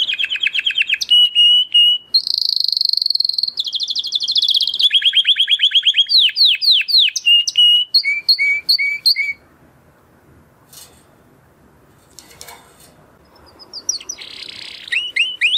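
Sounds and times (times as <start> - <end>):
canary singing: 0.0 - 9.6, 13.2 - 15.5.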